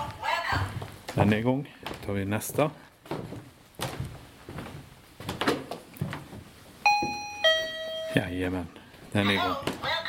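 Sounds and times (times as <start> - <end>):
footsteps on wooden boards: 0.0 - 7.2
speech: 1.2 - 2.9, 8.2 - 9.9
motion sensor electronic chime triggered by a foot: 6.9 - 8.4.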